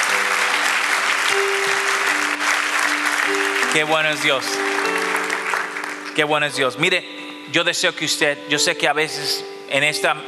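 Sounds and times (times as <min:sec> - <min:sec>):
audience applause: 0:00.0 - 0:06.6
speech: 0:03.7 - 0:04.8, 0:06.2 - 0:10.2.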